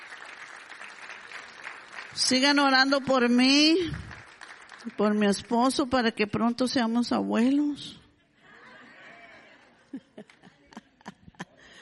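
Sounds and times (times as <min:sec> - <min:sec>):
audience applause: 0:00.0 - 0:02.2, 0:04.0 - 0:05.0
speech: 0:02.2 - 0:04.1, 0:04.8 - 0:08.0
laughter: 0:08.3 - 0:11.8.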